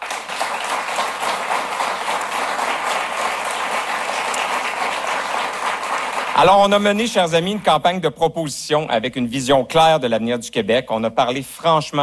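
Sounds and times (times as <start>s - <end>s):
audience applause: 0.0s - 7.0s
speech: 6.4s - 12.0s.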